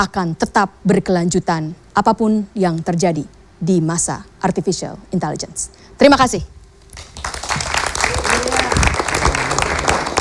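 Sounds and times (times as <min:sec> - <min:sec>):
speech: 0:00.0 - 0:06.6
audience applause: 0:07.0 - 0:10.1.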